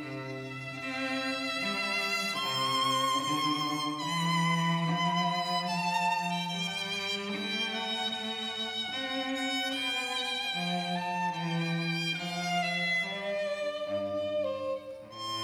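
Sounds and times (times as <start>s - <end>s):
cello: 0.0s - 15.4s
violin: 0.0s - 15.4s.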